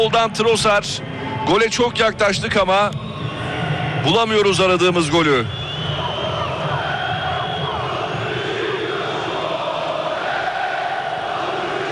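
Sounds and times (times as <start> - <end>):
speech: 0.0 - 3.0, 4.0 - 5.6
football fans chanting at a stadium: 5.9 - 11.9.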